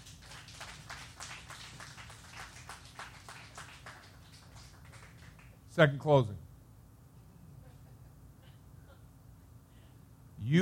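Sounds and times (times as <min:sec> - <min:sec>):
audience hand clapping: 0:00.0 - 0:05.6
speech: 0:05.8 - 0:06.4.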